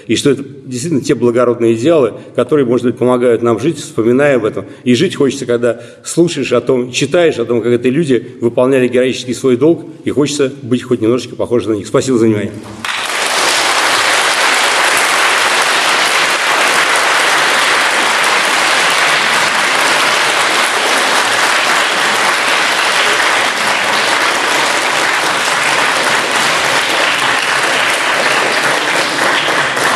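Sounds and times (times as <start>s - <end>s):
speech: 0.0s - 12.9s
audience applause: 12.8s - 29.9s.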